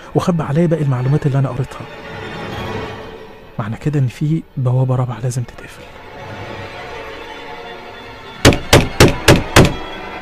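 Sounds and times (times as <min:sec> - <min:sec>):
speech: 0:00.1 - 0:02.0, 0:03.6 - 0:06.0
violent knocking on an apartment door: 0:08.4 - 0:09.8.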